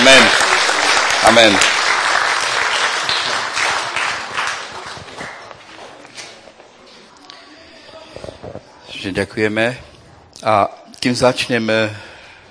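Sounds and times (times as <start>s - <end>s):
audience applause: 0.0s - 6.0s
speech: 1.2s - 1.8s, 9.1s - 12.1s.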